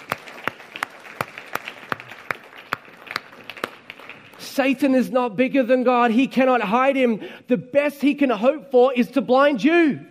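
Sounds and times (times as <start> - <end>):
audience applause: 0.0 - 4.5
speech: 4.6 - 10.0.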